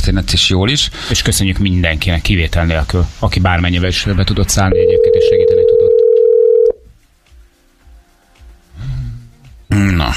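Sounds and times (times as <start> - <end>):
speech: 0.1 - 5.6, 9.8 - 10.1
telephone dialing tones calling a radio listener: 4.8 - 6.8.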